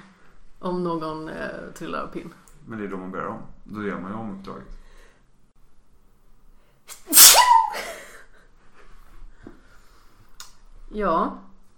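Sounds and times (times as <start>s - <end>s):
speech: 0.6s - 4.8s, 10.9s - 11.5s
person sneezing: 6.9s - 8.1s.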